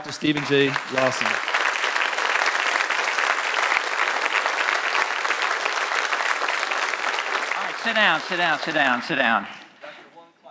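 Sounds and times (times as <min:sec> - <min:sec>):
speech: 0:00.0 - 0:01.6, 0:07.8 - 0:09.6
standing ovation applause: 0:00.0 - 0:09.9.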